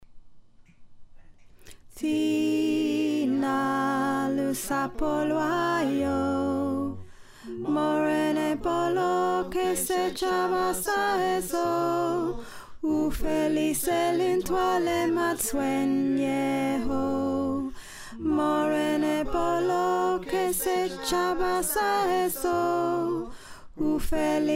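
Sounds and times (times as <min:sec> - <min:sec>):
alto choir singing: 0:02.0 - 0:24.5.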